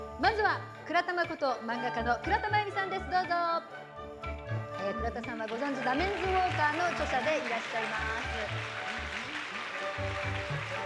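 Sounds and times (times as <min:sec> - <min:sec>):
speech: 0:00.2 - 0:03.9, 0:04.8 - 0:08.8
studio audience applause welcoming guests onto the stage: 0:05.6 - 0:10.8.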